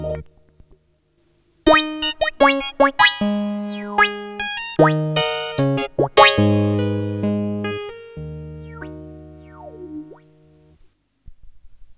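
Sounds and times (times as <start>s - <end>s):
Moog Polymoog synthesizer presets: 1.7s - 10.8s.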